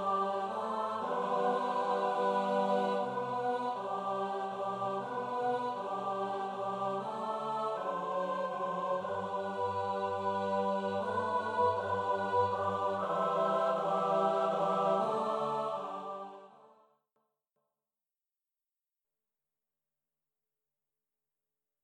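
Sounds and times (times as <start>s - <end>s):
unaccompanied four-part SATB mixed voice choir singing: 0.0s - 16.8s.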